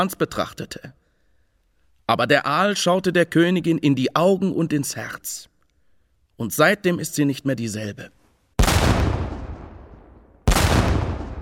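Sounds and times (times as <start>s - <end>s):
speech: 0.0s - 1.0s, 2.1s - 5.5s, 6.4s - 8.2s
cannon shots being fired: 8.6s - 11.4s.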